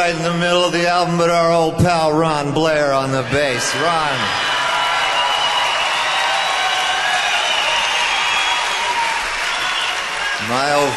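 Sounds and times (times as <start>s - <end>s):
speech: 0.0s - 4.5s, 10.4s - 10.9s
audience applause: 3.5s - 10.9s.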